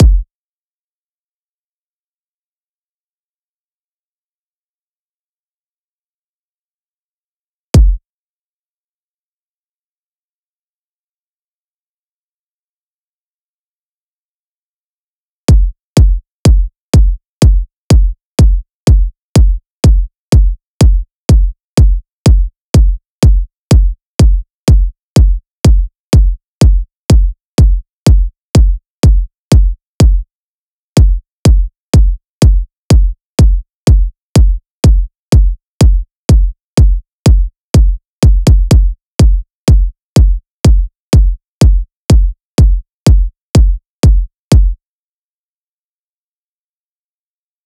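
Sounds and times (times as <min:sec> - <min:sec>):
future house kick drums: 0:00.0 - 0:00.2, 0:07.8 - 0:08.0, 0:15.5 - 0:30.2, 0:31.0 - 0:44.8.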